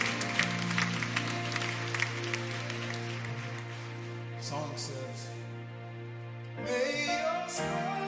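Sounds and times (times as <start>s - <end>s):
audience clapping: 0.0s - 4.4s
speech: 4.5s - 5.4s, 6.6s - 7.9s.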